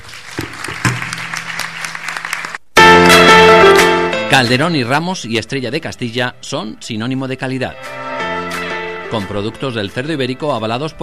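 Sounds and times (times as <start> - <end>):
audience applause after award speech: 0.0 - 3.2
loud music: 0.8 - 4.8, 7.6 - 10.4
speech: 4.3 - 8.0, 9.1 - 11.0.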